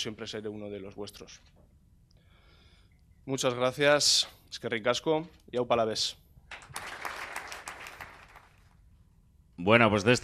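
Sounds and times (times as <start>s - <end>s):
speech: 0.0s - 1.6s, 3.2s - 6.9s, 9.6s - 10.2s
teammates applauding at a Deportivo Alavés footballer's farewell: 6.5s - 8.8s.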